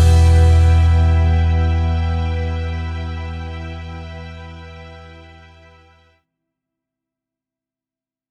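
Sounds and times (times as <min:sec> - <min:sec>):
guitar chord progression at 100 bpm: 0:00.0 - 0:06.0.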